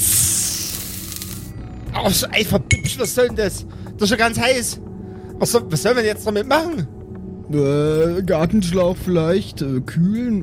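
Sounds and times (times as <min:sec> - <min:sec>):
soft hiss from opened jar: 0:00.0 - 0:01.5
speech: 0:02.0 - 0:06.9, 0:07.5 - 0:10.4.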